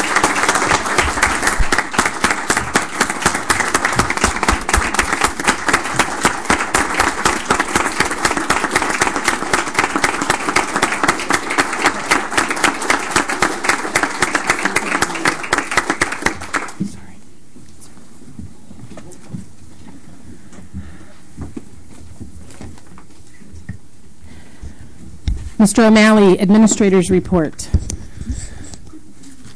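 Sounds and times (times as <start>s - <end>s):
audience applause: 0.0s - 16.8s
speech: 25.6s - 27.8s.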